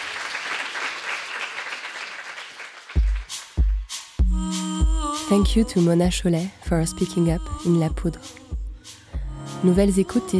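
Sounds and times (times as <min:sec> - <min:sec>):
audience applause: 0:00.0 - 0:03.4
heavy low thumps: 0:04.2 - 0:10.3
speech: 0:05.3 - 0:08.4, 0:09.6 - 0:10.3.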